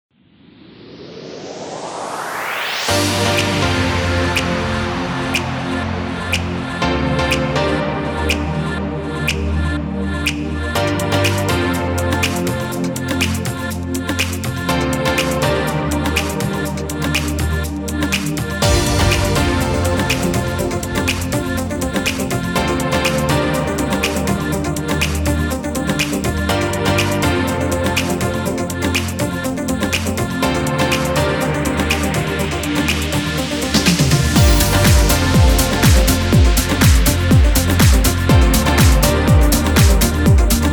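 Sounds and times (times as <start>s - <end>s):
upbeat music: 1.7s - 40.7s.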